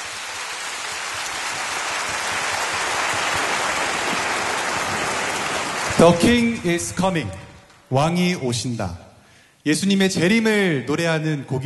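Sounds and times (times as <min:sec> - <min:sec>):
audience applause: 0:00.0 - 0:07.1
speech: 0:06.0 - 0:09.0, 0:09.6 - 0:11.6.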